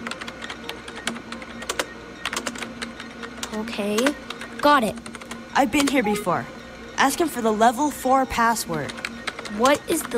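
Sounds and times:
typing on a computer keyboard: 0:00.0 - 0:06.0, 0:08.7 - 0:10.1
speech: 0:03.6 - 0:10.1.

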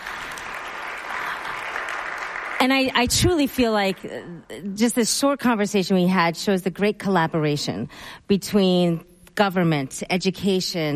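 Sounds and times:
audience applause for the panelists: 0:00.0 - 0:03.1
speech: 0:02.6 - 0:10.9.

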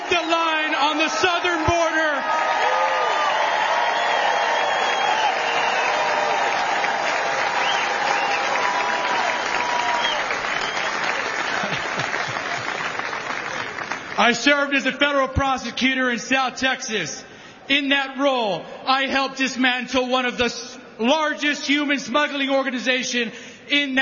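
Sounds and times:
audience applause: 0:01.0 - 0:14.2
speech: 0:14.2 - 0:24.0.

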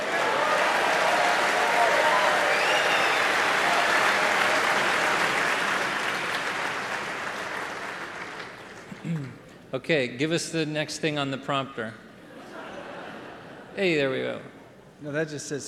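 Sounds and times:
audience applause: 0:00.0 - 0:09.3
speech: 0:09.8 - 0:12.0, 0:13.8 - 0:15.6
laughter: 0:12.2 - 0:14.4.

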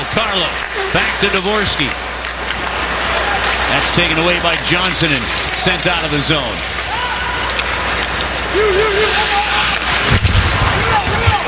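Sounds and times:
hockey fans cheering in an arena: 0:00.0 - 0:11.4
speech: 0:00.4 - 0:02.1, 0:03.7 - 0:06.8, 0:08.5 - 0:09.3
high-pitched whoop: 0:06.9 - 0:07.5, 0:08.5 - 0:09.7.

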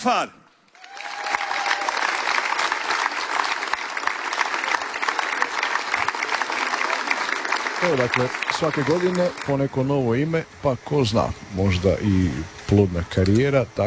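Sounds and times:
speech: 0:00.0 - 0:00.4, 0:07.8 - 0:13.8
festival audience applause at a chanson song festival: 0:00.7 - 0:11.0.

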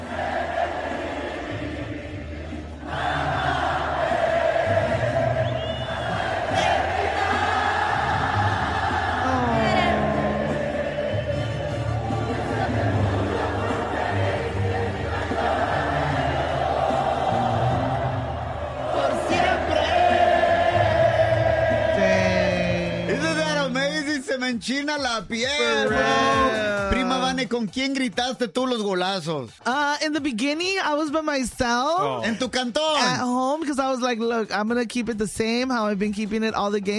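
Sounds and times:
massive stadium crowd singing together: 0:00.0 - 0:23.2
crowd cheers and shouts: 0:02.9 - 0:23.7
speech: 0:24.5 - 0:36.9.

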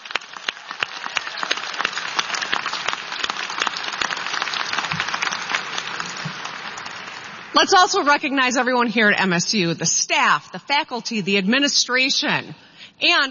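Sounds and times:
crowd applauding: 0:00.0 - 0:07.6
speech: 0:07.6 - 0:13.2.

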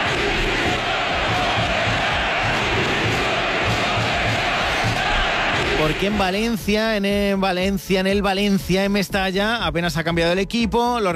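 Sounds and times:
Valencia fans chanting at Mestalla during the Trofeo Naranja preseason football match: 0:00.0 - 0:06.3
speech: 0:05.8 - 0:11.1.

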